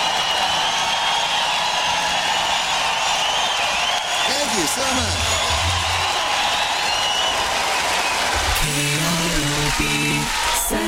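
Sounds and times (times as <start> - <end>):
concert audience applause welcoming a performer: 0.0 - 10.8
speech: 4.6 - 5.4.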